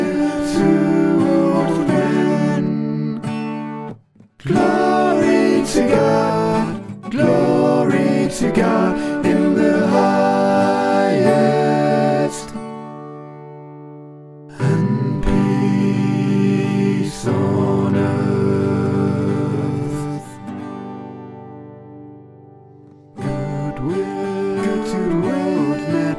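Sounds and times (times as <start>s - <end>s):
SATB choir singing: 0.0s - 3.3s, 4.4s - 12.7s, 14.5s - 20.4s, 23.2s - 26.1s.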